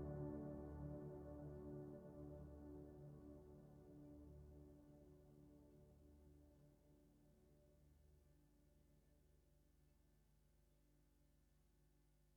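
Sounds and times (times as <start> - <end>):
ambient music with freeze effect: 0.0 - 6.7.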